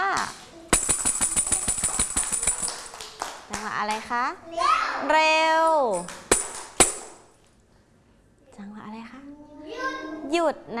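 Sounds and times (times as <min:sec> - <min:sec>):
tambourine strike: 0:00.7 - 0:02.9
speech: 0:03.8 - 0:06.2, 0:10.4 - 0:10.7.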